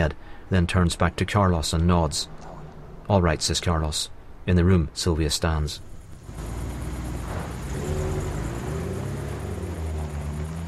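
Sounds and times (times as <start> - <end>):
speech: 0.0 - 2.5, 3.1 - 6.5
pickup truck driving away: 5.9 - 10.6.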